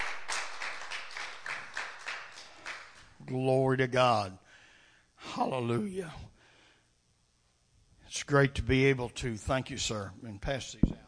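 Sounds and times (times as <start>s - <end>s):
audience clapping in praise: 0.0s - 3.2s
speech: 3.2s - 4.4s, 5.3s - 6.3s, 8.1s - 11.0s.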